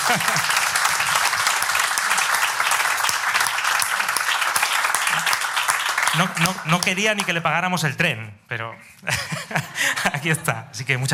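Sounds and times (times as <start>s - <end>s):
laughter: 0.0s - 1.2s, 9.0s - 10.4s
audience applause: 0.0s - 7.4s
speech: 0.1s - 0.6s, 6.1s - 11.1s.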